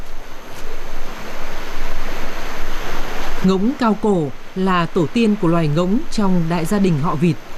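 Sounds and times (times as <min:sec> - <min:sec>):
strong waves crashing onto the shore of a large body of water: 0:00.0 - 0:07.5
speech: 0:03.4 - 0:07.5.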